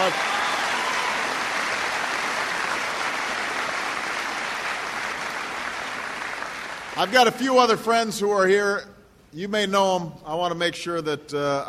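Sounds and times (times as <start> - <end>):
speech: 0.0 - 0.3, 7.0 - 11.6
audience applause: 0.0 - 7.3.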